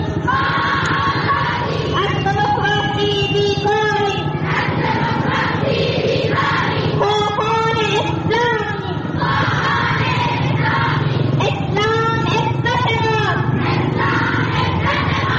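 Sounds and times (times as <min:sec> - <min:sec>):
dozens of women chanting in unison at a pro-Taliban rally in Zaranj, Nimruz: 0:00.2 - 0:02.2, 0:04.2 - 0:07.4, 0:09.0 - 0:11.4, 0:13.4 - 0:15.3
continuous crowd roar at a pro-Taliban rally in Zaranj, Nimruz: 0:00.2 - 0:02.9, 0:03.6 - 0:15.3.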